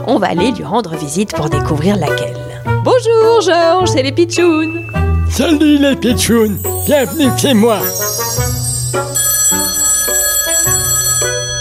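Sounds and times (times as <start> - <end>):
speech: 0.0 - 8.5
telephone ringing in a home near Dinard, France: 6.6 - 11.5.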